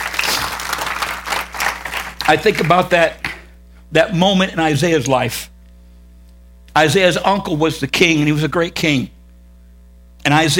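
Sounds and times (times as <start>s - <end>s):
audience hand clap of praise: 0.0s - 3.5s
speech: 2.3s - 3.2s, 3.9s - 5.5s, 6.8s - 9.2s, 10.2s - 10.5s.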